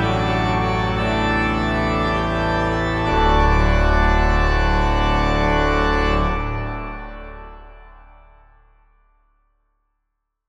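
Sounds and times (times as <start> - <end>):
Organteq organ: 0.0 - 8.3.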